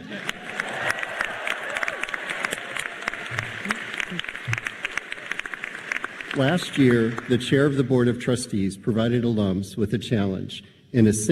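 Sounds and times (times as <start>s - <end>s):
scattered cheers and shouts: 0.0s - 5.4s
large crowd applauding: 0.0s - 8.4s
speech: 6.4s - 11.3s.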